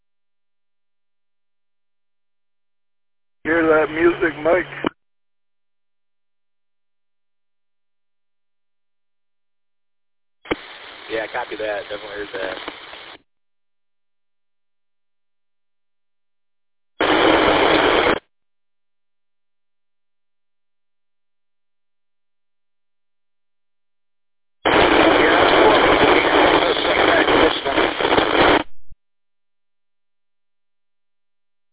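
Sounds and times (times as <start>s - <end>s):
speech: 3.4s - 4.8s
loud radio static: 3.5s - 4.9s, 10.5s - 13.2s, 17.0s - 18.2s, 24.7s - 28.8s.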